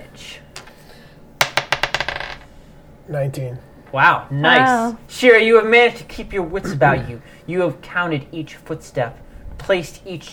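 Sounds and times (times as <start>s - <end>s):
dice clattering across a hard surface: 1.4s - 2.4s
speech: 3.1s - 10.3s.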